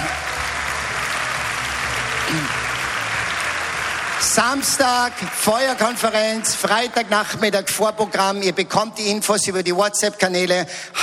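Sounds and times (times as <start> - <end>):
audience applause: 0.0 - 8.1
speech: 2.3 - 2.6, 4.3 - 11.0.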